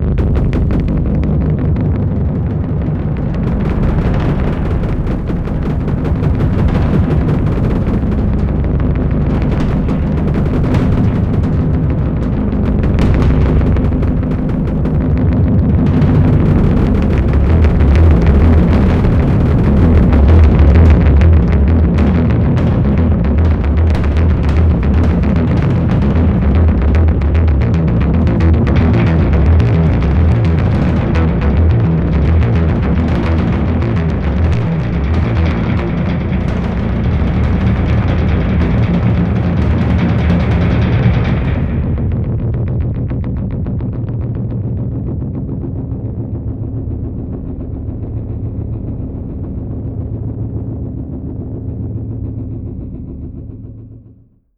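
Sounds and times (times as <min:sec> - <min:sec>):
bass drum: 0:00.0 - 0:54.1.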